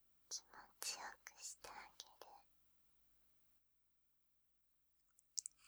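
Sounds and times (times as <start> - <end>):
sweet ASMR whispering: 0.3 - 2.5.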